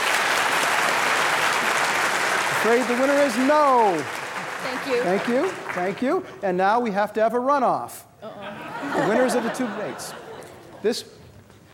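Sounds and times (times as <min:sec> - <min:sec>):
audience applause: 0:00.0 - 0:06.2
speech: 0:02.6 - 0:08.4, 0:09.0 - 0:10.2, 0:10.8 - 0:11.2
laughter: 0:08.4 - 0:11.0.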